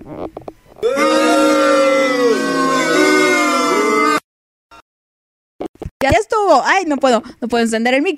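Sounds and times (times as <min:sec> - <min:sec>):
crowd booing sound effect: 0:00.8 - 0:04.2
speech: 0:06.5 - 0:08.1.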